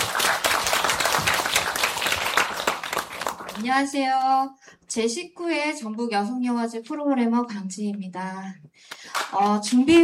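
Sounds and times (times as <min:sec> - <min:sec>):
audience applause: 0:00.0 - 0:03.6
speech: 0:03.6 - 0:10.0.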